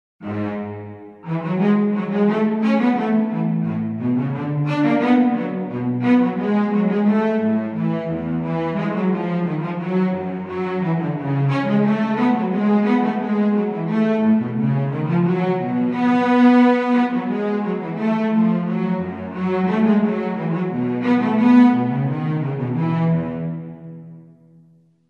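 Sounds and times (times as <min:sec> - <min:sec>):
instrumental music: 0:00.2 - 0:25.0.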